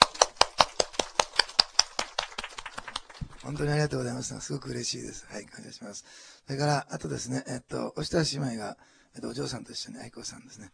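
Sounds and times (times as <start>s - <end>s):
welcoming applause: 0.0s - 3.9s
speech: 3.5s - 10.7s.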